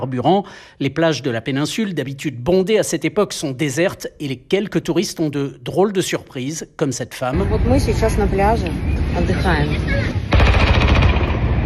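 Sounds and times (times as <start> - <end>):
speech: 0.0 - 10.6
heavy weapons firing at drones: 10.3 - 11.6.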